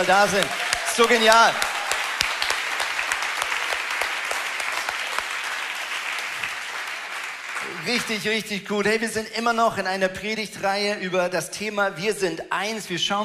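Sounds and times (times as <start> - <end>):
speech: 0.0 - 1.7, 7.8 - 13.2
audience applause in a church: 0.0 - 8.2.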